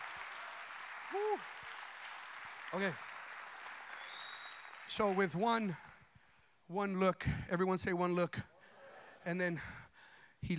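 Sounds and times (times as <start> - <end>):
audience clapping hands: 0.0 - 5.8
speech: 1.1 - 1.6, 2.7 - 3.1, 4.9 - 5.9, 6.7 - 8.5, 9.2 - 10.5.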